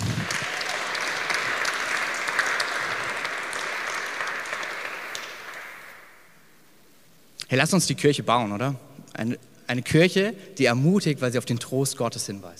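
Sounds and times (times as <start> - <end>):
audience applause: 0.0 - 6.2
speech: 7.5 - 12.5.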